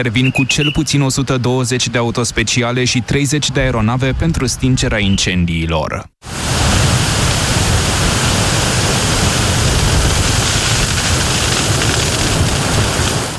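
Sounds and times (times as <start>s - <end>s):
speech: 0.0s - 6.6s
strong wind at a wildfire: 3.4s - 5.2s, 6.2s - 13.3s.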